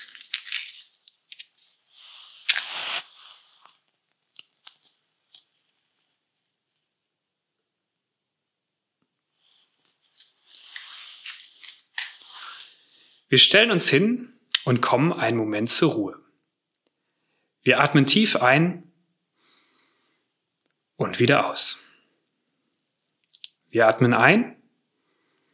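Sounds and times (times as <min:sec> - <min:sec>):
candle being lit: 0:01.9 - 0:03.8
speech: 0:13.3 - 0:16.3, 0:17.6 - 0:18.9, 0:21.0 - 0:21.8, 0:23.7 - 0:24.6.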